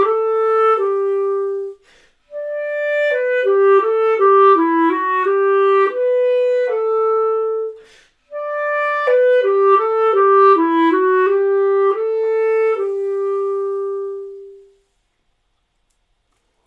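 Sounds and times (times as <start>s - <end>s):
clarinet: 0.0s - 15.0s.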